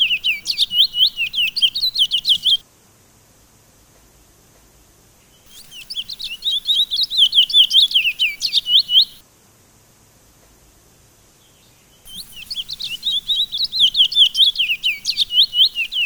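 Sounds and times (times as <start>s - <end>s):
Sunda laughingthrush song of quick high-pitched slurred chirps: 0.0s - 2.6s, 5.5s - 9.2s, 12.1s - 16.0s.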